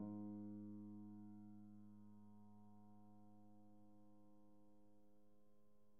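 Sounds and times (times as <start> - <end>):
Steinway piano played pianissimo: 0.0 - 4.3.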